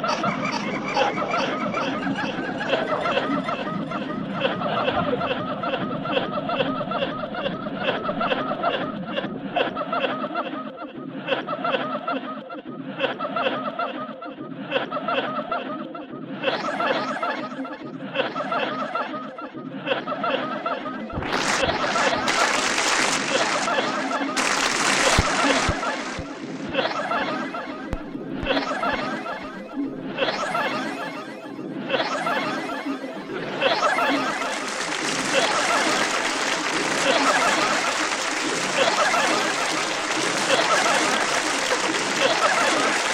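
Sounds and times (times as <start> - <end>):
audience laughing in a theatre: 0.0 - 43.1
clapping: 21.2 - 23.8, 24.4 - 26.3, 34.5 - 43.1.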